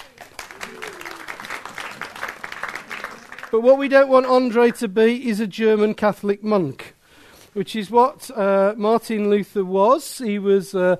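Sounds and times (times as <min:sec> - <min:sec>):
audience applause: 0:00.0 - 0:03.6
speech: 0:03.5 - 0:06.8, 0:07.6 - 0:10.9.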